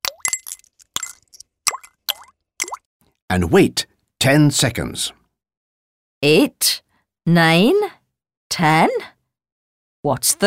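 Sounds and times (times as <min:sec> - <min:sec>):
copper pennies plopping into a bowl of vinegar and salt: 0:00.0 - 0:02.8
speech: 0:03.3 - 0:05.2, 0:06.2 - 0:09.1, 0:10.0 - 0:10.4.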